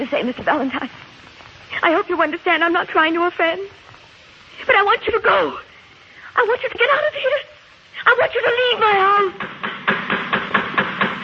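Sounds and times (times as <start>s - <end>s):
speech: 0.1s - 3.8s, 4.6s - 5.7s, 6.4s - 9.8s
knocking on a door: 9.4s - 11.2s.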